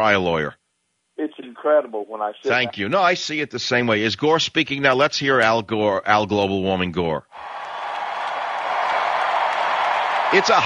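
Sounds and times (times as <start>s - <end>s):
speech: 0.0s - 0.6s, 1.2s - 7.6s, 10.3s - 10.6s
crowd applauding a speaker: 7.4s - 10.6s.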